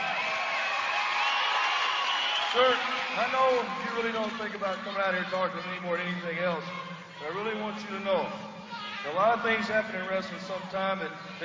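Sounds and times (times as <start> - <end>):
audience applause: 0.0 - 5.2
speech: 2.5 - 11.4.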